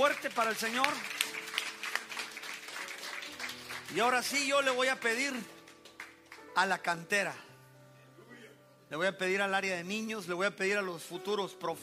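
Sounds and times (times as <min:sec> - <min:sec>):
speech: 0:00.0 - 0:01.3, 0:03.9 - 0:05.6, 0:06.6 - 0:07.5, 0:08.9 - 0:11.8
audience applause: 0:00.0 - 0:06.4.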